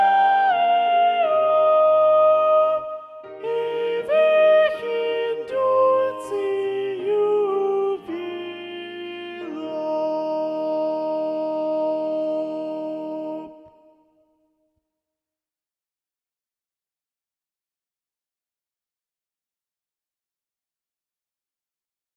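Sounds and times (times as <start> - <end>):
SATB choir with predominant soprano: 0.0 - 13.9.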